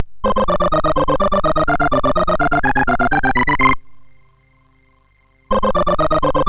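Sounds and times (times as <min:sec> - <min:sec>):
MOS6581R4 SID chip music: 0:00.2 - 0:04.2, 0:05.5 - 0:06.4.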